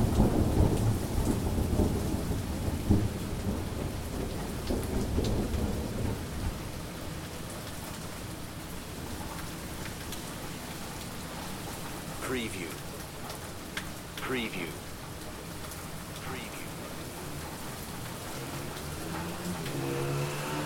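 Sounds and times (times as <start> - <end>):
thunder in Manchester: 0.0 - 6.6
heavy rain in Manchester: 0.0 - 20.6.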